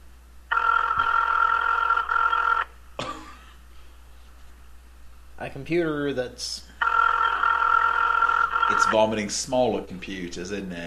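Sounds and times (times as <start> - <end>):
electronic phone ringtone: 0.5 - 2.7, 6.8 - 9.1
speech: 5.4 - 6.7, 8.7 - 10.8.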